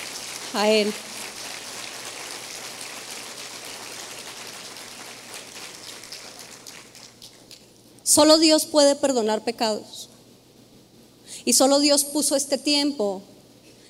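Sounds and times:
audience applause: 0:00.0 - 0:07.5
speech: 0:00.5 - 0:01.1, 0:08.2 - 0:10.1, 0:11.4 - 0:13.4.

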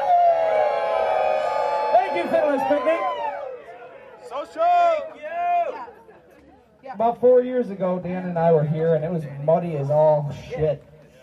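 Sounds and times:
crowd hollering together: 0:00.0 - 0:06.0
speech: 0:07.0 - 0:10.9.

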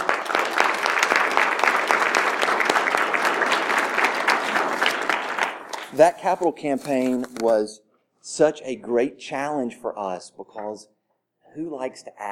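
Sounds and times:
steady crowd applause: 0:00.0 - 0:06.5
speech: 0:06.0 - 0:11.0, 0:11.6 - 0:12.2.

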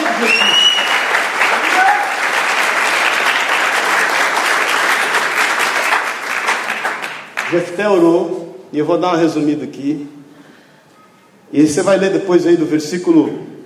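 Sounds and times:
audience applause: 0:00.0 - 0:07.6
speech: 0:07.5 - 0:10.2, 0:11.5 - 0:13.5.

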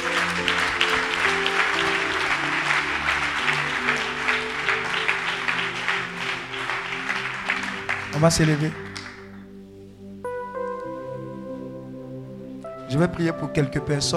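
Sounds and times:
congregation applauding at a church service: 0:00.0 - 0:09.5
musical tones: 0:00.0 - 0:14.1
speech: 0:08.2 - 0:08.8, 0:13.0 - 0:14.1.

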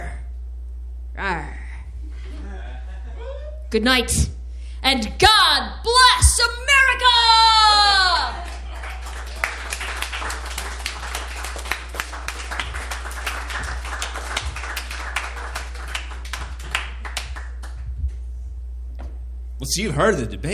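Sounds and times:
laughter: 0:02.0 - 0:03.7, 0:07.9 - 0:15.9
speech: 0:03.7 - 0:08.0, 0:19.7 - 0:20.5
applause: 0:08.3 - 0:17.8.

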